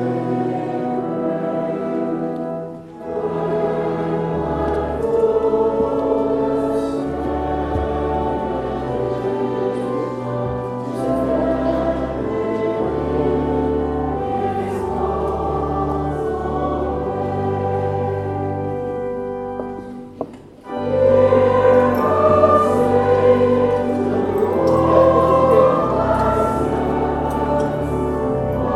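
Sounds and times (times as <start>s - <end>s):
handbells playing a hymn: 0.0s - 28.7s
chimes: 20.7s - 28.7s.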